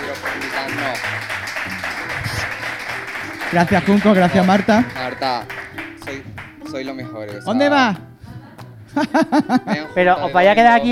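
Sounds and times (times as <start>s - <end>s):
laughter: 0.0s - 5.5s, 8.9s - 10.9s
crowd applause: 0.0s - 6.7s
speech: 0.2s - 1.3s, 3.5s - 5.6s, 6.7s - 8.1s, 9.0s - 10.9s
people talking and calling out: 0.7s - 10.9s.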